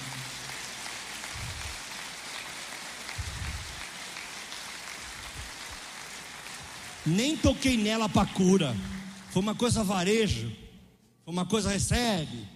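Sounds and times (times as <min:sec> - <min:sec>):
audience applause: 0:00.0 - 0:09.7
speech: 0:07.0 - 0:10.6, 0:11.3 - 0:12.5.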